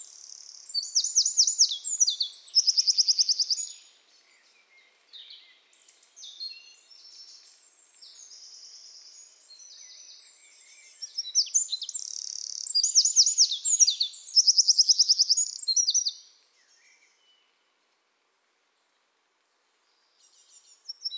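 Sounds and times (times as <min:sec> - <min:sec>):
Eurasian wren singing: 0:00.2 - 0:03.7, 0:11.1 - 0:16.1.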